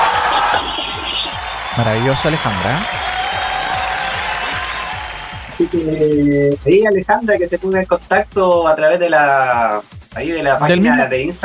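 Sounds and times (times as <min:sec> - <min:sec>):
audience applause: 0:00.0 - 0:06.0
speech: 0:01.8 - 0:03.0, 0:05.6 - 0:11.4.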